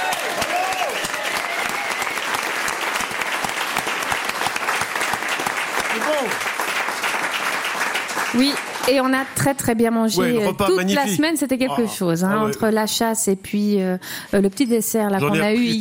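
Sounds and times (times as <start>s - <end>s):
crowd applauding: 0.0s - 9.6s
speech: 8.4s - 15.7s.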